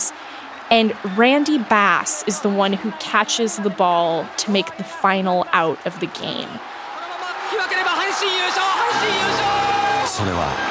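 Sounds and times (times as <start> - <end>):
stadium crowd cheering wildly: 0.0 - 10.6
speech: 0.7 - 6.8, 7.5 - 10.6.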